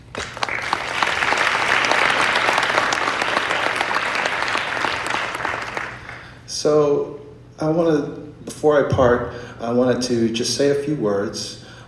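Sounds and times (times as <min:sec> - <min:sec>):
audience applause: 0:00.0 - 0:06.2
speech: 0:06.6 - 0:11.6.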